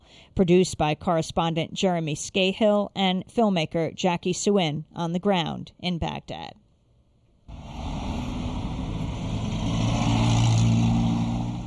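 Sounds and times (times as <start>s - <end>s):
speech: 0.4s - 6.6s
congested city street traffic in Baghdad: 7.5s - 11.6s.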